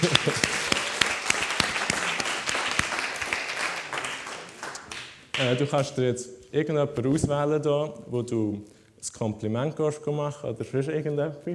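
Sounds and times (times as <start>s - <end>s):
audience applause: 0.0s - 5.4s
speech: 5.4s - 11.5s.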